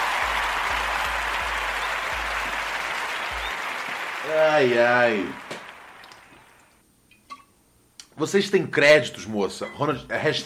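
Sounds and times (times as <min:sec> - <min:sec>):
crowd applause: 0:00.0 - 0:06.6
speech: 0:04.3 - 0:05.5, 0:08.2 - 0:10.4.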